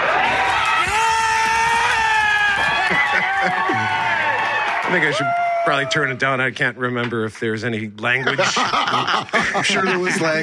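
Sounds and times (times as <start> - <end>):
fans screaming and cheering at game end: 0.0 - 6.2
laughter: 2.6 - 4.3, 8.0 - 10.4
speech: 4.9 - 10.4.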